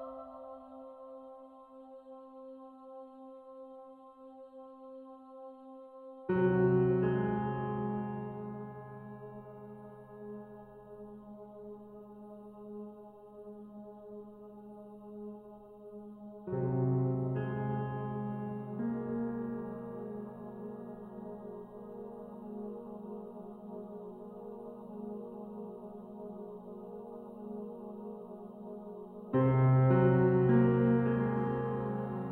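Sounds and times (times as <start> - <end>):
piano music for a scary moment: 0.0 - 1.5, 6.3 - 12.0, 16.4 - 32.3.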